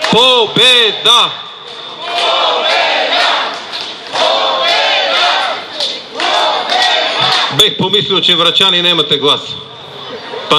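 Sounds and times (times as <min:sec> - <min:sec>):
crowd chanting and shouting: 0:00.0 - 0:07.8
speech: 0:00.1 - 0:01.8, 0:07.6 - 0:09.6.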